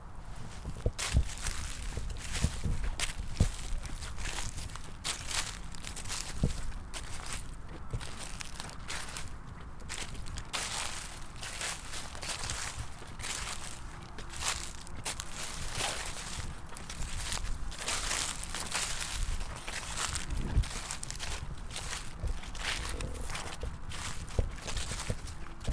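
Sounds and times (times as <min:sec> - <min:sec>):
dead leaves on a university campus: 0:00.2 - 0:25.7.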